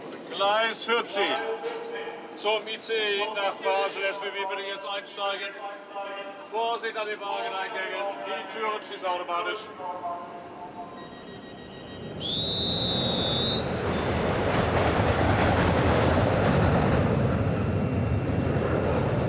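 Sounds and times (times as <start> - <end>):
speech: 0.4 - 10.4, 12.2 - 13.0
metallic wheel squeal: 10.9 - 14.4
roller coaster on a test run: 12.1 - 19.2.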